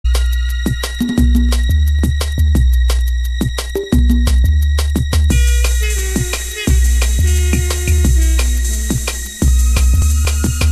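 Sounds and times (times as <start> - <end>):
drum and bass jungle and old skool music on UK Bass Radio: 0.0 - 10.6.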